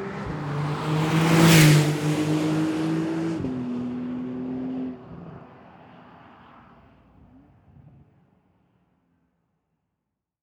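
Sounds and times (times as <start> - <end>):
Porsche 911 Carrera S 992 MK1 engine with standard exhaust: 0.0 - 8.3.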